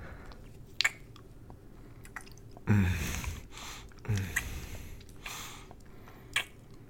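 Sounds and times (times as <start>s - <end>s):
kissing: 0.7s - 1.2s, 3.9s - 5.5s, 6.3s - 6.7s.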